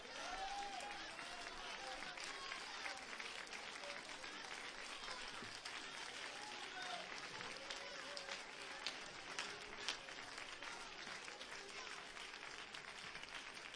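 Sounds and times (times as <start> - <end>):
scattered voices and cheering: 0.0 - 11.1
audience clapping hands: 0.0 - 13.7.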